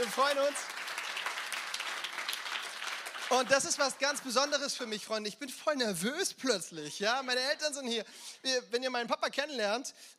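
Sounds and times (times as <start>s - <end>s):
applause: 0.0s - 5.1s
speech: 0.1s - 0.8s, 3.3s - 10.1s.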